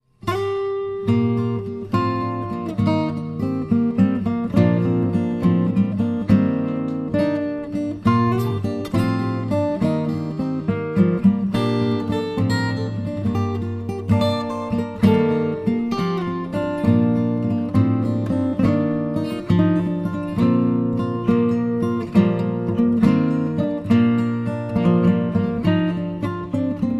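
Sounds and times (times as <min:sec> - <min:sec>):
instrumental music: 0:00.0 - 0:26.9.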